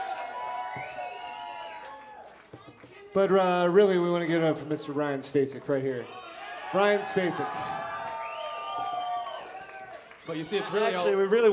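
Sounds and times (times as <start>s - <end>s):
round of applause: 0.0s - 3.7s, 6.1s - 11.5s
speech: 3.1s - 7.8s, 10.3s - 11.5s.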